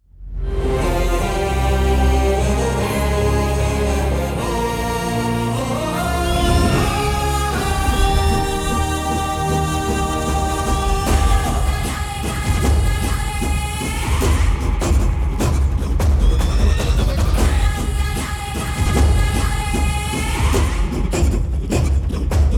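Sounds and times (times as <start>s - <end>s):
entry background music: 0.2s - 22.5s.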